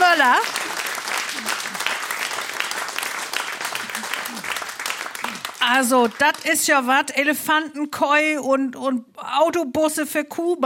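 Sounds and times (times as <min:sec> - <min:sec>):
audience applause: 0:00.0 - 0:06.5
speech: 0:05.7 - 0:10.6.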